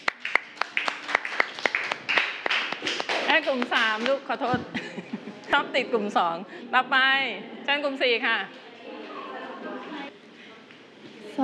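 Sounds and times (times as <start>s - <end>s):
audience clapping: 0.0s - 4.5s
speech: 3.4s - 8.6s
laughter: 4.5s - 5.8s, 8.9s - 10.1s.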